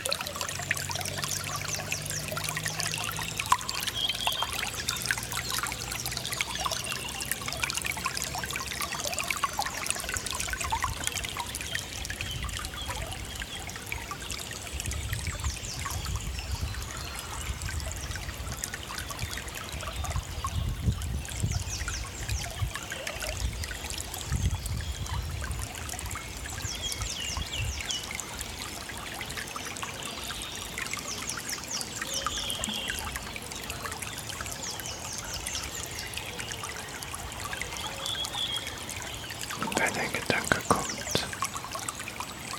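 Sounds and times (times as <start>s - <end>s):
Heisterbach brook water flowing: 0.0s - 42.5s.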